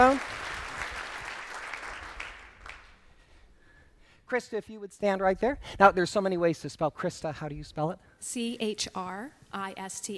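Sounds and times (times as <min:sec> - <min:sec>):
speech: 0:00.0 - 0:00.3, 0:04.3 - 0:10.1
audience applause: 0:00.0 - 0:03.0.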